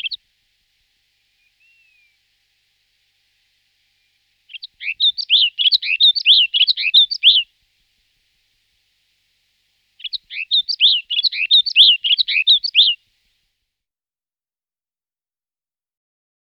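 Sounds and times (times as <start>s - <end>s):
snow bunting singing warbled phrase: 0.0s - 0.2s, 1.2s - 2.4s, 3.0s - 7.5s, 10.0s - 13.0s.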